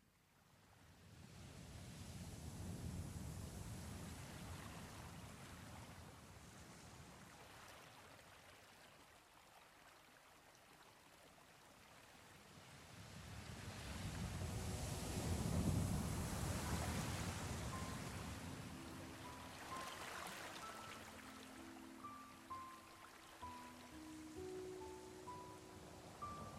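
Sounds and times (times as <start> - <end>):
sea: 0.0 - 26.5
flowing water: 7.0 - 12.8, 13.5 - 26.5
music: 14.2 - 26.5.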